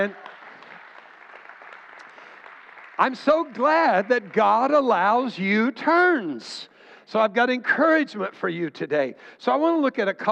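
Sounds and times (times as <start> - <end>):
speech: 0.0 - 0.2, 3.0 - 10.3
crowd clapping: 0.0 - 5.4.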